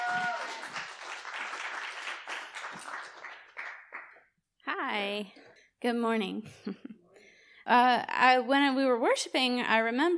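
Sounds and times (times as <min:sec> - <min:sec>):
church congregation applause welcoming a guest speaker: 0:00.0 - 0:04.2
speech: 0:04.8 - 0:06.9, 0:07.7 - 0:10.1.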